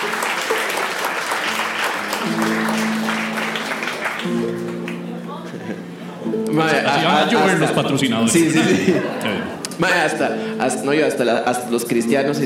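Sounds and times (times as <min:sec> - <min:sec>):
audience applause: 0:00.0 - 0:05.6
laughter: 0:05.2 - 0:06.1, 0:06.9 - 0:09.8
speech: 0:06.5 - 0:12.4.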